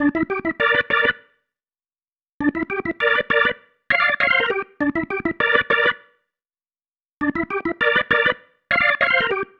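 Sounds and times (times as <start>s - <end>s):
organ pattern: 0.0s - 1.4s, 2.4s - 6.2s, 7.2s - 9.5s.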